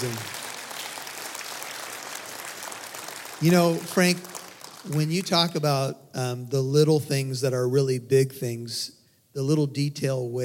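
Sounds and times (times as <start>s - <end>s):
group clapping: 0.0s - 5.7s
speech: 3.4s - 10.4s.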